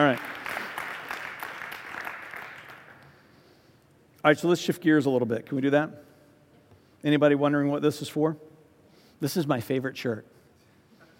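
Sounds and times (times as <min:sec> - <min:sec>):
audience clapping: 0:00.0 - 0:03.2
speech: 0:04.2 - 0:06.1, 0:07.0 - 0:08.5, 0:09.2 - 0:10.4.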